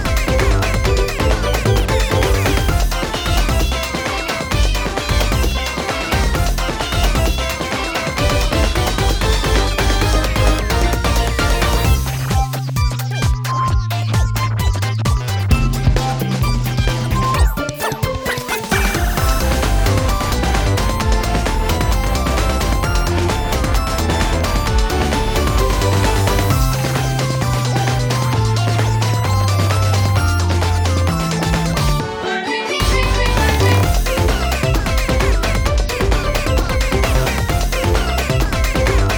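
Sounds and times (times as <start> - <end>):
background music: 0.0 - 39.1.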